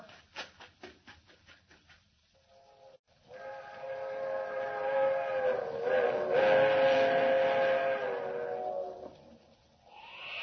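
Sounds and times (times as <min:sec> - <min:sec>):
train whistle: 0:02.6 - 0:09.2.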